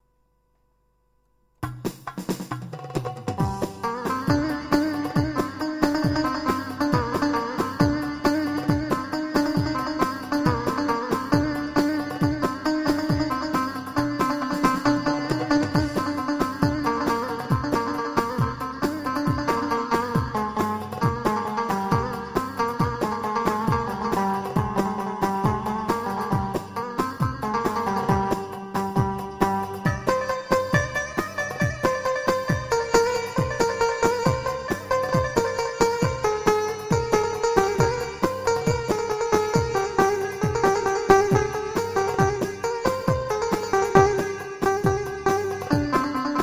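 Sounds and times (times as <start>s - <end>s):
Korg PA 55 electronic keyboard: 3.3s - 46.4s.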